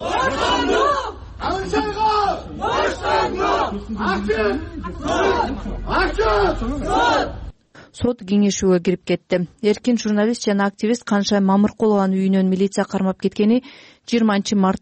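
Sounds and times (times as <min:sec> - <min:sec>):
crowd of about 30 people shouting outside a courthouse: 0:00.0 - 0:07.5
speech: 0:03.8 - 0:07.4, 0:08.0 - 0:14.8.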